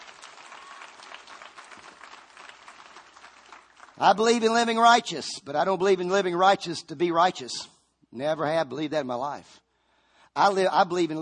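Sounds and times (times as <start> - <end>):
crowd clapping: 0.0 - 4.8
speech: 4.0 - 9.6, 10.4 - 11.2.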